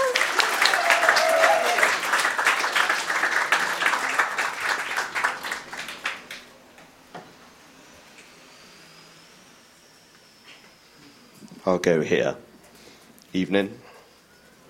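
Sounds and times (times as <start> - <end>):
audience applause: 0.0 - 6.5
speech: 11.7 - 12.5, 13.3 - 13.9.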